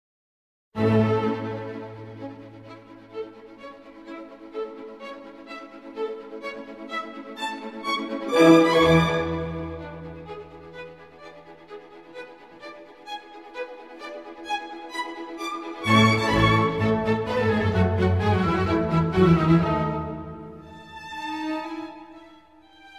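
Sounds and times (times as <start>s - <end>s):
violin concerto with orchestra: 0.8s - 22.9s.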